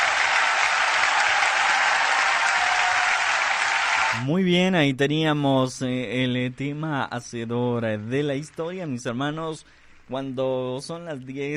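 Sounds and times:
crowd applauding: 0.0s - 4.2s
speech: 4.2s - 11.5s.

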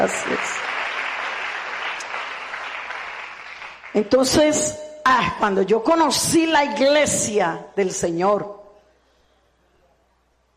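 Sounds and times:
speech: 0.0s - 0.7s, 3.9s - 8.6s
crowd applause: 0.0s - 3.9s.

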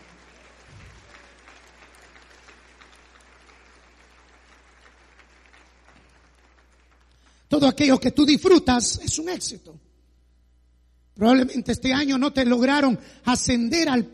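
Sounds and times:
audience applauding: 0.0s - 7.3s
speech: 7.6s - 9.9s, 11.2s - 14.1s.

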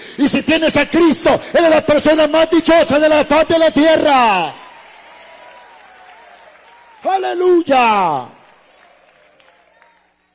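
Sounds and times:
speech: 0.2s - 4.6s, 7.0s - 8.4s
congregation applauding during a church service: 1.6s - 10.3s.

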